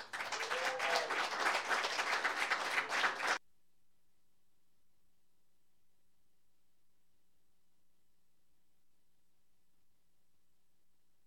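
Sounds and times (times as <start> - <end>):
audience applause welcoming a songwriter and performer to the stage: 0.0 - 3.4.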